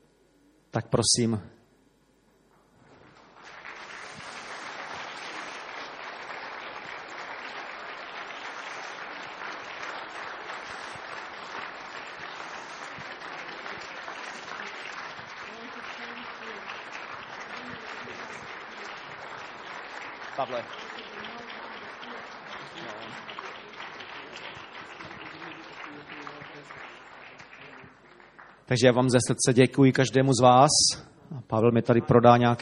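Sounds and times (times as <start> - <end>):
speech: 0.7 - 1.6, 28.8 - 32.6
audience applause for people receiving small gifts: 2.9 - 28.7.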